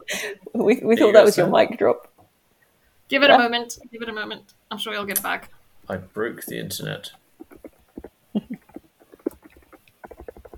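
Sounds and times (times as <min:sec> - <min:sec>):
speech: 0:00.2 - 0:02.1, 0:03.1 - 0:07.2
typing on a keyboard: 0:07.4 - 0:10.5.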